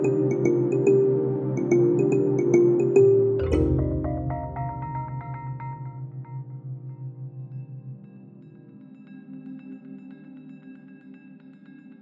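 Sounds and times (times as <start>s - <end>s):
DX7 synthesizer piano: 0.0s - 9.0s.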